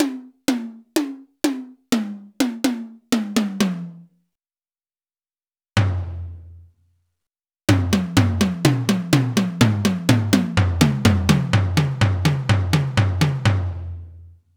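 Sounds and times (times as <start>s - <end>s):
melodic tom drum: 0.0s - 4.1s, 7.7s - 13.8s.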